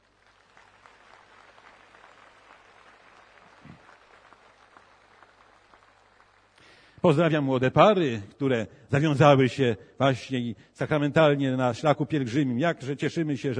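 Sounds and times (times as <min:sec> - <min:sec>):
audience applause: 0:00.0 - 0:06.9
speech: 0:07.0 - 0:13.5.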